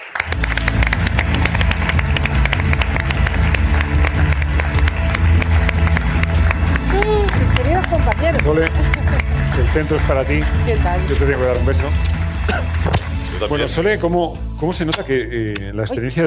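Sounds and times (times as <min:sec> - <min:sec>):
crowd applauding: 0:00.0 - 0:12.9
speech: 0:09.8 - 0:16.2.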